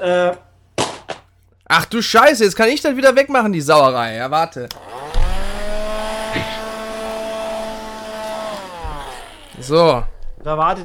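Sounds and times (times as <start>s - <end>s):
speech: 0.0s - 0.4s, 1.7s - 4.8s, 9.6s - 10.8s
vacuum cleaner running: 4.8s - 10.0s.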